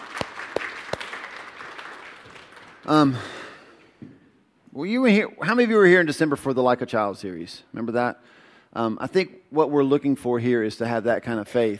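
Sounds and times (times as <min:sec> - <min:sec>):
audience applause: 0:00.0 - 0:03.6
speech: 0:02.9 - 0:03.4, 0:04.8 - 0:11.7.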